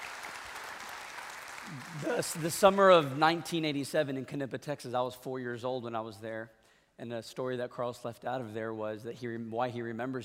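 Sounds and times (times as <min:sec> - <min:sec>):
applause: 0:00.0 - 0:03.5
speech: 0:01.7 - 0:10.2.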